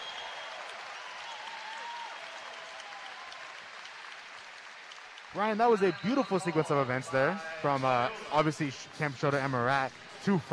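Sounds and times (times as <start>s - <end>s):
basketball crowd applauding: 0.0s - 7.8s
speech: 5.4s - 10.5s.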